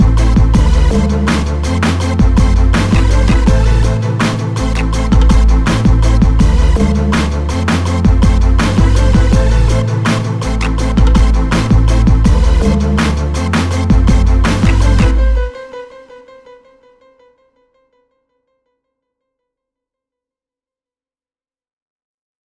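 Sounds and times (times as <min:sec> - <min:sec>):
groove music: 0:00.0 - 0:15.6.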